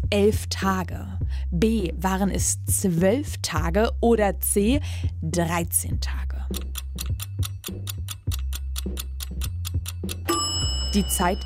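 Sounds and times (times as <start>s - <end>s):
speech: 0.1s - 7.3s, 10.9s - 11.4s
alarm clock ticking: 6.5s - 11.4s.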